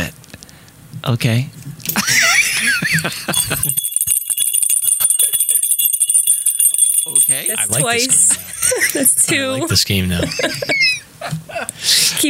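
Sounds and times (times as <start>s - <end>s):
speech: 1.0s - 1.6s, 2.9s - 3.8s, 7.1s - 12.2s
laughter: 1.9s - 3.8s, 8.3s - 12.2s
bell ringing: 3.3s - 9.4s.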